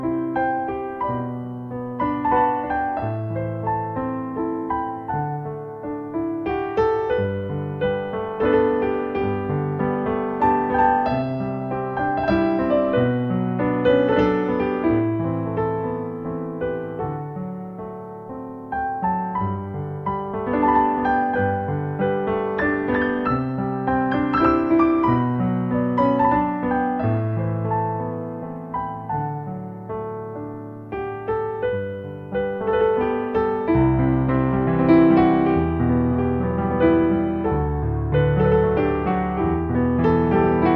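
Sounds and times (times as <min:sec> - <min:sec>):
Irish melody: 0:00.0 - 0:40.7.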